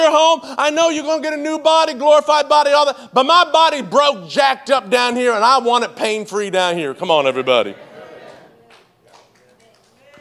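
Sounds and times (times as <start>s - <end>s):
speech: 0.0s - 7.8s
audience golf clapping: 8.2s - 10.1s.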